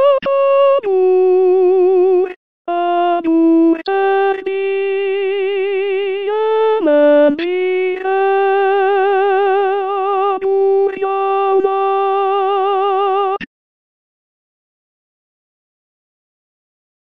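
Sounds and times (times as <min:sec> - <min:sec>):
tenor singing: 0:00.0 - 0:13.4.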